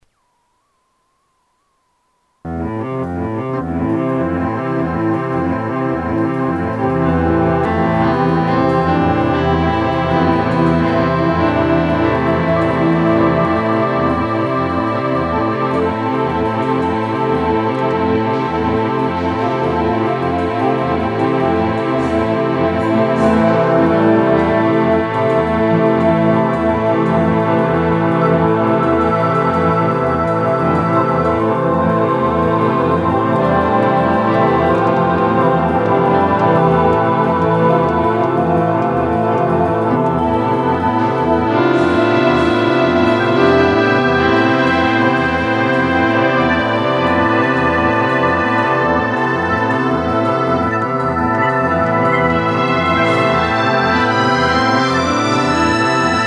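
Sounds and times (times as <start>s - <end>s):
lo-fi music: 2.4s - 56.2s.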